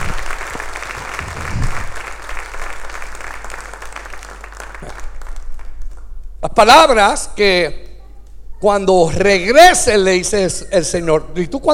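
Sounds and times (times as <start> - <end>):
audience applause: 0.0 - 6.1
speech: 6.6 - 7.8, 8.6 - 11.7.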